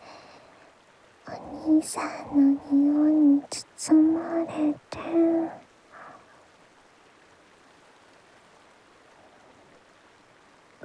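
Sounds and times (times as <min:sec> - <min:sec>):
gently flowing river water: 0:00.0 - 0:10.8
speech: 0:01.6 - 0:05.6.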